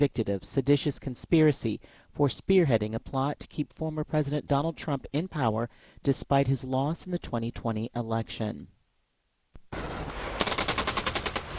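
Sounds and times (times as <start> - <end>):
speech: 0.0 - 8.8
automatic gunfire at South Korean and U.S. joint live-fire exercise: 10.0 - 11.5.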